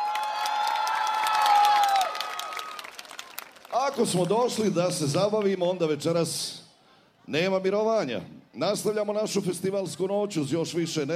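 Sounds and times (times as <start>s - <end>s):
festival crowd in Zenica applauding a band: 0.0s - 5.8s
speech: 3.8s - 6.6s, 7.3s - 11.1s.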